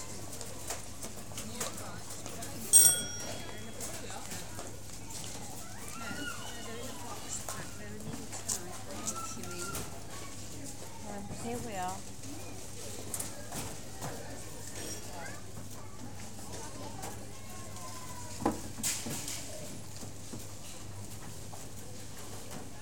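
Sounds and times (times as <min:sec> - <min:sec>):
supermarket ambience: 0:00.0 - 0:22.7.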